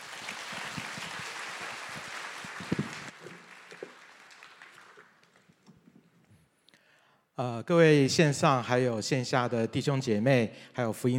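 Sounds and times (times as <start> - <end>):
audience applause: 0.0 - 5.6
speech: 7.4 - 11.1.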